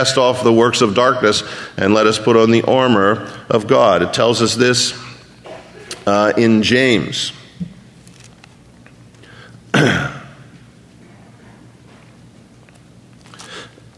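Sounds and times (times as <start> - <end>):
speech: 0.0 - 5.0, 6.0 - 7.4, 9.8 - 10.2
throat clearing: 5.4 - 6.0, 9.7 - 10.4.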